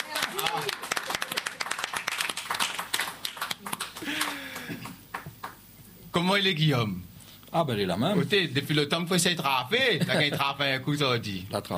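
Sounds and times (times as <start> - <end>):
audience applause: 0.0 - 5.6
speech: 6.2 - 11.7.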